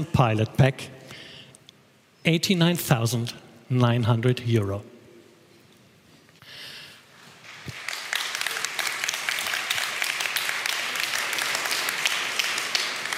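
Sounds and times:
speech: 0:00.0 - 0:01.0, 0:02.2 - 0:04.9
weak audience applause at event: 0:07.3 - 0:13.1.

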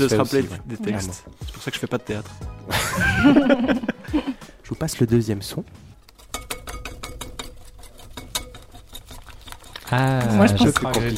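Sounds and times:
speech: 0:00.0 - 0:05.9, 0:09.9 - 0:11.1
laughter: 0:02.7 - 0:04.5
whisk beating crêpe batter in a bowl: 0:06.1 - 0:11.1.

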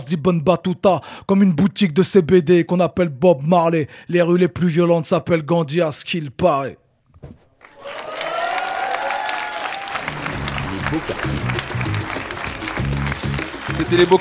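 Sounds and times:
speech: 0:00.0 - 0:08.1, 0:10.9 - 0:11.8, 0:13.8 - 0:14.1
audience applauding: 0:07.6 - 0:14.1
audience cheering and whooping: 0:07.7 - 0:13.8.

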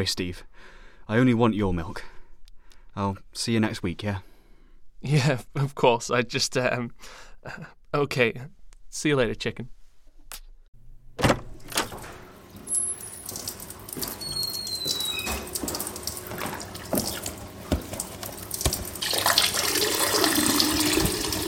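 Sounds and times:
speech: 0:00.0 - 0:02.1, 0:03.0 - 0:04.3, 0:05.0 - 0:09.8
strong stream of urine: 0:12.5 - 0:21.4.

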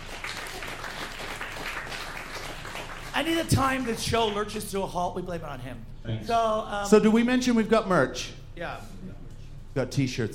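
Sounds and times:
audience applause: 0:00.0 - 0:04.4
speech: 0:03.2 - 0:09.0, 0:09.8 - 0:10.3.

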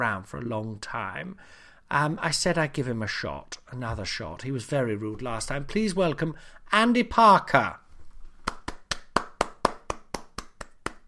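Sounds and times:
speech: 0:00.0 - 0:07.8
hands clapping: 0:08.4 - 0:11.0.

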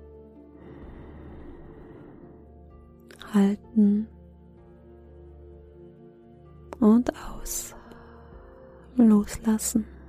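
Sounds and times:
long inhalation during a guided breathing exercise: 0:00.5 - 0:02.8
speech: 0:03.3 - 0:04.2, 0:06.8 - 0:07.8, 0:09.0 - 0:09.9.

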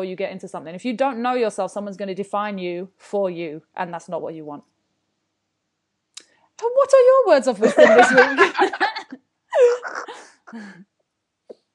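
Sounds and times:
speech: 0:00.0 - 0:04.7, 0:06.6 - 0:10.9
laughter: 0:07.6 - 0:10.7
person clearing throat: 0:09.6 - 0:10.8.

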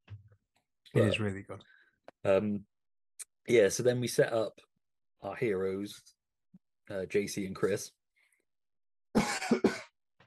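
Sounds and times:
speech: 0:00.9 - 0:02.7, 0:03.4 - 0:06.2, 0:06.9 - 0:08.0, 0:09.5 - 0:09.8
man coughing and choking: 0:09.2 - 0:10.0.

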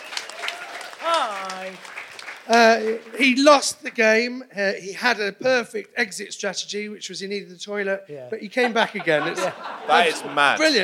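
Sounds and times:
audience applause welcoming a guest back: 0:00.0 - 0:03.7
speech: 0:02.5 - 0:10.8
laughter: 0:08.4 - 0:10.8.

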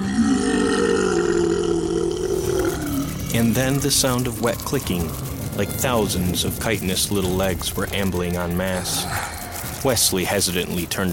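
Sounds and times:
colossal creature retching: 0:00.0 - 0:11.1
speech: 0:03.3 - 0:11.1.

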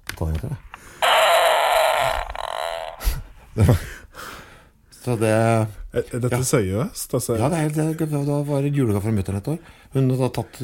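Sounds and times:
speech: 0:00.2 - 0:01.0, 0:03.6 - 0:04.0, 0:05.0 - 0:10.6
recorded fart: 0:01.0 - 0:03.2.

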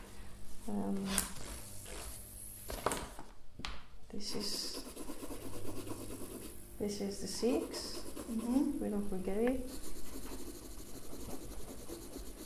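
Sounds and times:
speech: 0:00.7 - 0:01.4, 0:04.2 - 0:04.9, 0:06.8 - 0:09.9
graphite pencil drawing lines on paper: 0:04.3 - 0:06.6, 0:07.4 - 0:08.8, 0:09.6 - 0:12.4.

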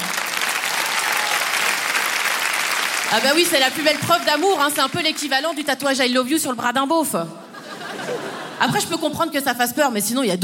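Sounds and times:
audience clapping: 0:00.0 - 0:06.0
speech: 0:03.1 - 0:07.4, 0:08.0 - 0:10.4
laughter: 0:07.5 - 0:08.8.

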